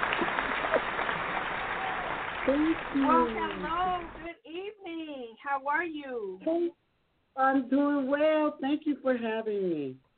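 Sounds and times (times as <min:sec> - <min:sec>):
round of applause: 0:00.0 - 0:04.3
speech: 0:02.4 - 0:04.4, 0:05.6 - 0:06.8, 0:07.4 - 0:10.0.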